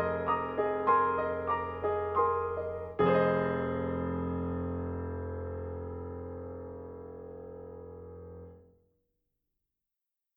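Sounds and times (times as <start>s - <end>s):
piano in a studio: 0.0s - 8.8s.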